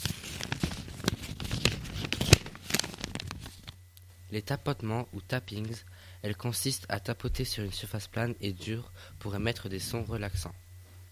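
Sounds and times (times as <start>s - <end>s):
paper crumpling for ASMR: 0.0s - 3.8s
speech: 4.3s - 10.6s.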